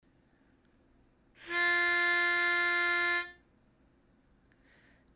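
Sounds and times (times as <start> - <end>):
solo lead melody: 1.4 - 3.4.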